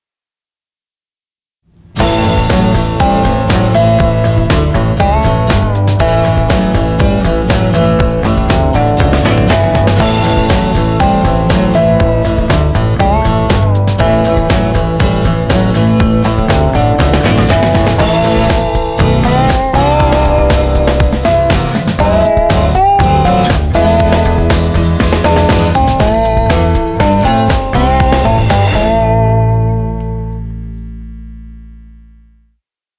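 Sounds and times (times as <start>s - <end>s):
country rock music: 1.9s - 31.9s.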